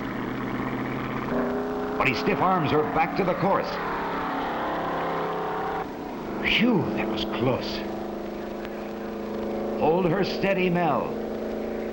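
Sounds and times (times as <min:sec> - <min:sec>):
race car engine roaring at takeoff: 0:00.0 - 0:11.9
speech: 0:02.0 - 0:04.0, 0:06.4 - 0:07.9, 0:09.8 - 0:11.2.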